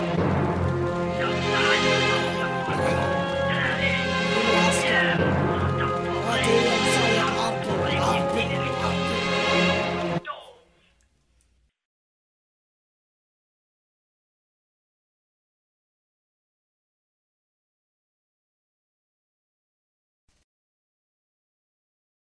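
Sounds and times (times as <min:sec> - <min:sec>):
hip hop music: 0:01.1 - 0:10.1.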